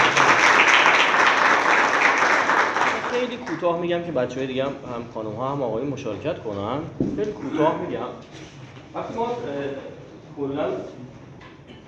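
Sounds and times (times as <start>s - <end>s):
audience applause: 0.0s - 3.6s
speech: 3.6s - 11.2s.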